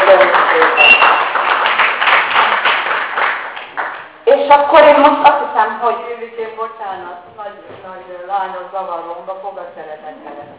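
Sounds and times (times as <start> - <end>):
audience applause thanking a speaker: 0.0 - 4.0
speech: 5.0 - 10.5.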